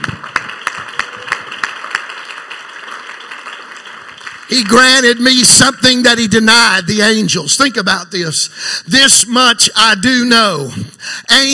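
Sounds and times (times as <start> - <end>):
audience clapping hands: 0.0 - 6.0
speech: 4.5 - 11.5.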